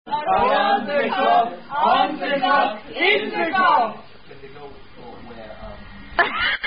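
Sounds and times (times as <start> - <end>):
Swedish chant drinking toast: 0.1 - 4.1.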